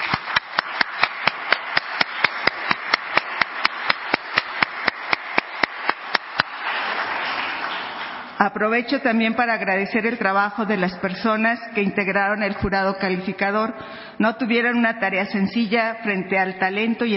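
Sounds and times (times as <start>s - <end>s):
audience applause: 0.0s - 8.4s
speech: 8.4s - 17.1s.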